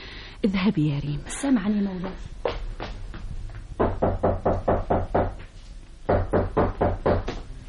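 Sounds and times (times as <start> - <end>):
speech: 0.4 - 2.4
knocking on a door: 3.8 - 5.4, 6.1 - 7.5.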